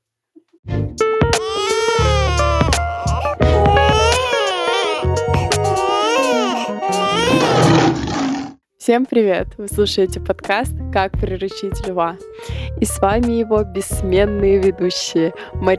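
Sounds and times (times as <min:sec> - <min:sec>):
baby crying: 0:01.4 - 0:08.0
speech: 0:08.9 - 0:15.7.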